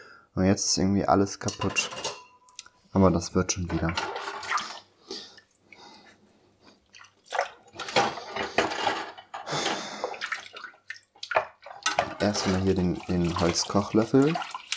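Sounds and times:
speech: 0.4 - 2.2, 2.9 - 4.2, 12.2 - 14.5
dishes clinking: 1.4 - 2.6, 3.7 - 4.5, 7.8 - 9.9, 11.4 - 12.8
running water splashing: 3.8 - 4.9, 10.0 - 14.7.

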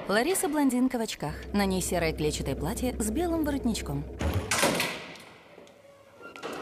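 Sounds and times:
speech: 0.1 - 4.4
door being locked: 4.4 - 5.3.

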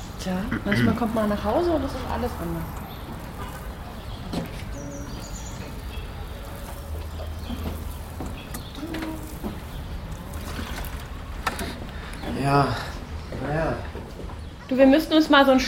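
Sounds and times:
speech: 0.2 - 2.8, 12.5 - 12.9, 14.7 - 15.6
water pouring from a watering can: 1.0 - 12.6.

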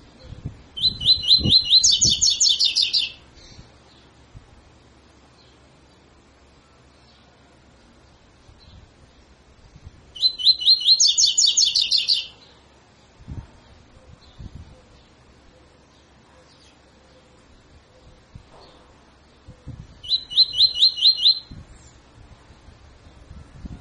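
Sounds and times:
double-collared seedeater song: 0.2 - 3.2, 10.2 - 12.4, 19.6 - 21.6.

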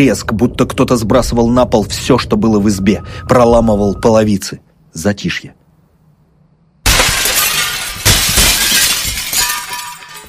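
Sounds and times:
speech: 0.0 - 5.6
window glass shattering outward: 6.8 - 10.2.

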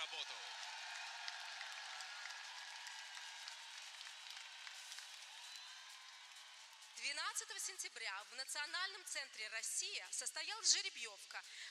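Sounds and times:
speech: 0.0 - 0.6, 7.0 - 11.6
audience applause: 0.0 - 7.0.

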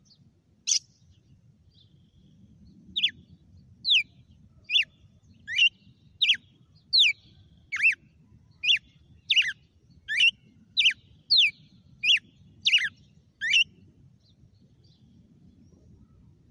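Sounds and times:
red-cowled cardinal song: 0.7 - 1.1, 3.0 - 13.8.

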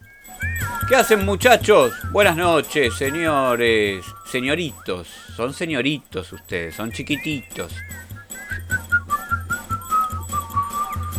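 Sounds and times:
people whistling: 0.0 - 11.1
laughter: 0.2 - 11.1
speech: 0.9 - 8.0.

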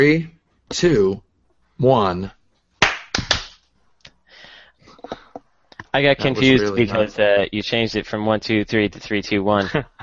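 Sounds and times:
speech: 0.0 - 1.2, 1.8 - 2.4, 6.0 - 10.0
group clapping once in unison: 2.8 - 3.6.

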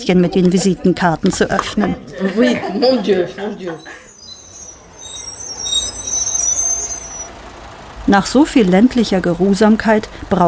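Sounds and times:
speech: 0.0 - 4.0, 8.1 - 10.4
bus travelling from Ornans to Besançon, France: 0.0 - 10.4
laughter: 0.6 - 4.2
high-pitched whines and squeals: 3.6 - 8.0.

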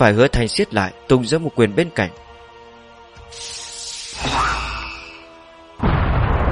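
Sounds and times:
speech: 0.0 - 2.2
deafening explosion boom: 5.8 - 6.5.

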